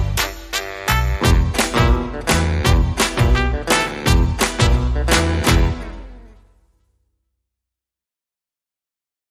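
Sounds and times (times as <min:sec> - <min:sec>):
rockabilly jive music without vocals or organ: 0:00.0 - 0:06.4.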